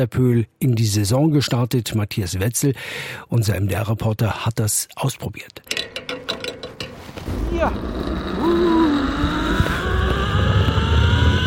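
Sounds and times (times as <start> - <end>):
speech: 0.0 - 5.9, 7.3 - 8.8
zipline trolley whirring along a cable over the Pöhl reservoir: 7.3 - 11.4.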